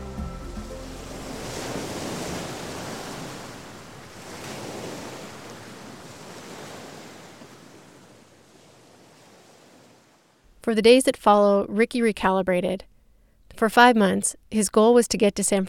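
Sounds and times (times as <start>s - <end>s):
ocean surf: 0.0s - 10.4s
speech: 10.7s - 12.9s, 13.6s - 15.6s.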